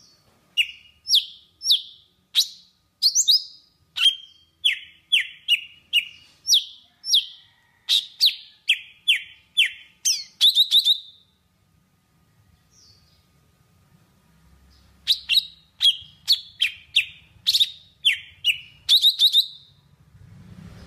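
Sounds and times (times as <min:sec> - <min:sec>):
Java sparrow whistled song: 0:00.0 - 0:07.4, 0:08.0 - 0:11.3, 0:15.0 - 0:19.8.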